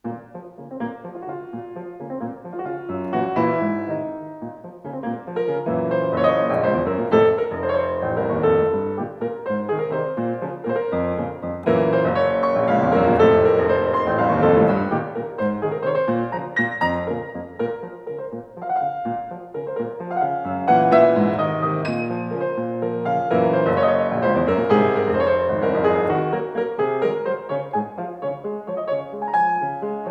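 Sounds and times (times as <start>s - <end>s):
waltz music: 0.0s - 30.0s.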